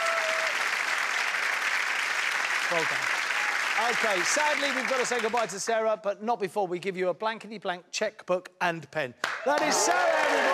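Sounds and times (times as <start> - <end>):
game show studio audience applause: 0.0 - 5.7, 9.2 - 10.5
speech: 2.7 - 3.2, 3.8 - 10.5.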